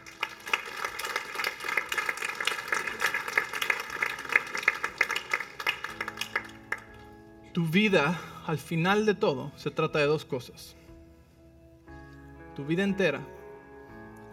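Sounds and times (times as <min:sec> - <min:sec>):
audience applause: 0:00.0 - 0:07.0
speech: 0:07.6 - 0:10.8, 0:12.6 - 0:13.4.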